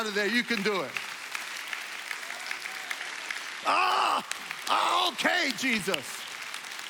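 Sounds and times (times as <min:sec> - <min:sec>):
speech: 0:00.0 - 0:01.1, 0:03.6 - 0:06.2
crowd clapping: 0:00.0 - 0:06.8
loud drawn-out voiced cry: 0:03.6 - 0:05.1.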